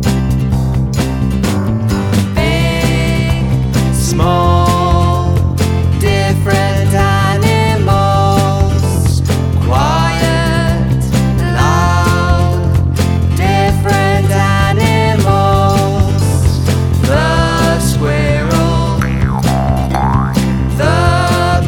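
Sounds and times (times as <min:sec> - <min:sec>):
song: 0:00.1 - 0:21.6.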